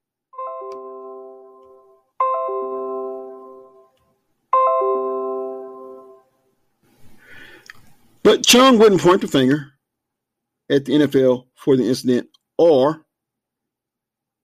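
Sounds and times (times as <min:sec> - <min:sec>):
device notification chimes: 0:00.4 - 0:03.9, 0:04.6 - 0:06.2
speech: 0:08.3 - 0:09.7, 0:10.7 - 0:13.0.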